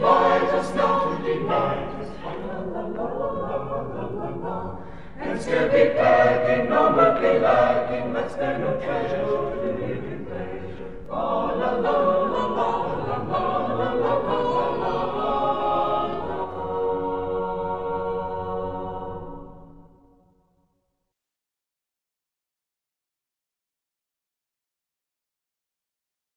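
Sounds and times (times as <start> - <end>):
a cappella madrigal singing: 0.0 - 20.1.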